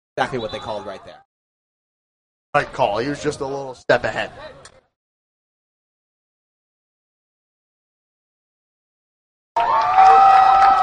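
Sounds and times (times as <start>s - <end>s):
speech: 0.2s - 1.3s, 2.5s - 4.8s, 9.6s - 10.4s
rowdy crowd cheering at Butterfield Stadium: 9.6s - 10.8s.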